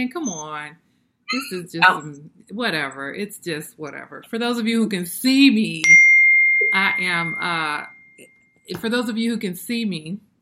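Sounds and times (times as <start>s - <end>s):
speech: 0.0s - 6.1s, 6.7s - 10.3s
phone notification ding: 1.3s - 2.0s, 5.8s - 8.2s.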